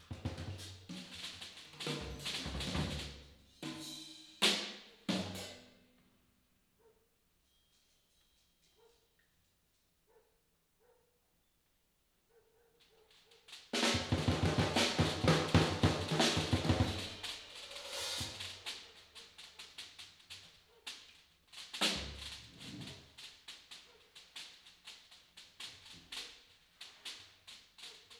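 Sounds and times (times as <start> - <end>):
drums: 0.0 - 6.0, 13.1 - 28.1.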